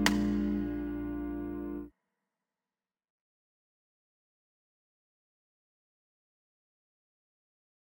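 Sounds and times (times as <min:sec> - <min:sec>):
Latin rhythm pulse exercise at 120 BPM: 0:00.0 - 0:01.9.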